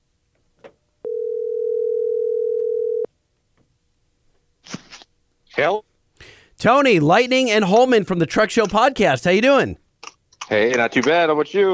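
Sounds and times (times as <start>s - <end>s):
telephone dial tone: 1.0s - 3.1s
speech: 5.6s - 5.9s, 6.6s - 9.8s, 10.5s - 11.7s.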